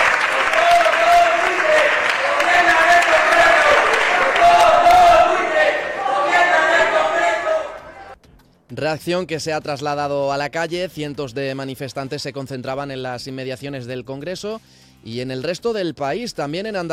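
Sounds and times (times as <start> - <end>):
people shouting in parliament as the session adjourns: 0.0 - 8.2
speech: 8.8 - 16.9.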